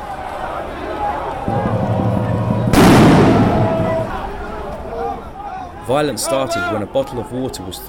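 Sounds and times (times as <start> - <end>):
people shouting: 0.0 - 7.0
steady crowd noise: 0.0 - 7.8
loud sharp blast of a sound bomb or rubber-bullet shot: 1.5 - 4.5
speech: 5.9 - 7.8.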